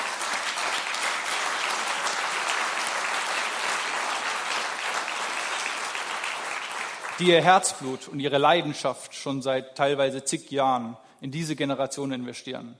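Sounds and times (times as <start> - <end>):
audience applause: 0.0 - 7.9
speech: 7.2 - 12.7.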